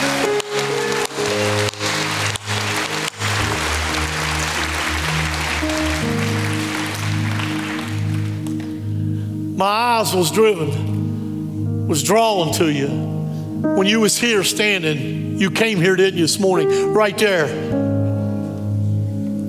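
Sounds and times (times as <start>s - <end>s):
audience clapping and cheering: 0.0s - 8.9s
organ or keyboard chords: 0.0s - 19.4s
speech: 9.6s - 11.0s, 11.9s - 17.8s.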